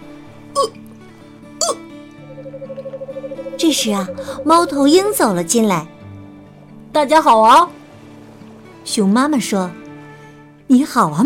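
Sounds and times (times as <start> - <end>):
hiccup: 0.6 - 0.8, 1.6 - 1.9
speech: 3.6 - 6.0, 7.0 - 7.8, 8.9 - 9.8, 10.7 - 11.2.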